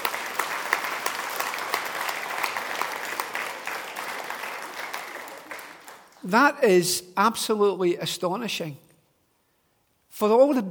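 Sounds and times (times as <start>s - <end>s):
audience round of applause: 0.0s - 6.3s
speech: 6.2s - 8.8s, 10.2s - 10.7s.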